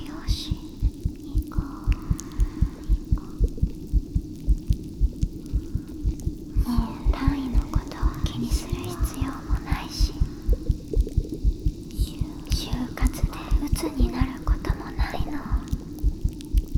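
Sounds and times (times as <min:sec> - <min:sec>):
person whispering: 0:00.0 - 0:03.7, 0:06.5 - 0:10.8, 0:11.8 - 0:16.0
carbonated drink fizzing: 0:00.0 - 0:16.7
heartbeat: 0:00.0 - 0:16.7.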